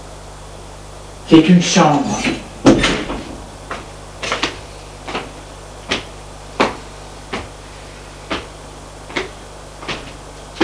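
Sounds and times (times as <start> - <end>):
speech: 1.3 - 2.4
door being opened: 1.7 - 3.5.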